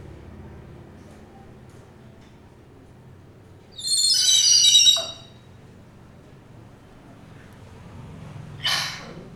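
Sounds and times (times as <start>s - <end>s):
bird in a Hanoi suburb: 3.7s - 5.5s, 8.6s - 9.2s.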